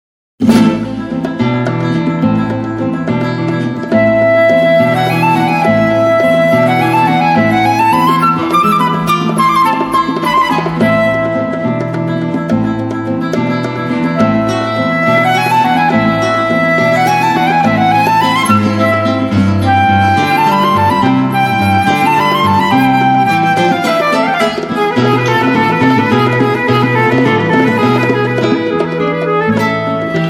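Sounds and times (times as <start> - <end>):
Spanish dance played by three musicians: 0.4 - 30.2.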